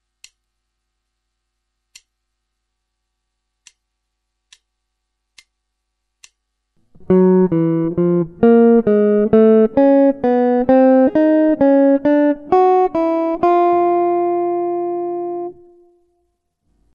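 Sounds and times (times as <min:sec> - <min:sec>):
guitar: 0:06.8 - 0:16.2.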